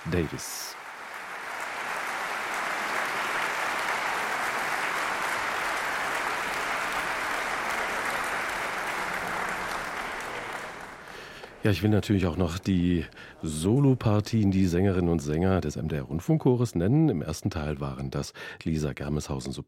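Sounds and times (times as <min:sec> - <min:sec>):
speech: 0:00.0 - 0:00.8, 0:11.6 - 0:19.6
concert audience applause: 0:00.0 - 0:11.9.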